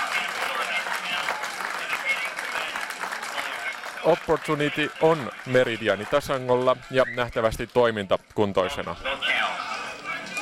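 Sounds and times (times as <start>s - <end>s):
mission control staff cheering and applauding: 0.0s - 7.9s
speech: 4.0s - 9.3s.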